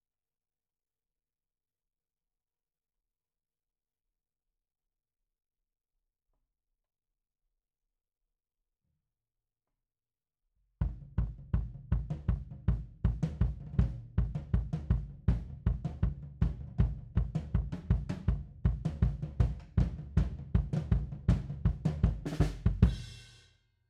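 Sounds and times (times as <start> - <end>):
kick drum beat: 10.8 - 23.2.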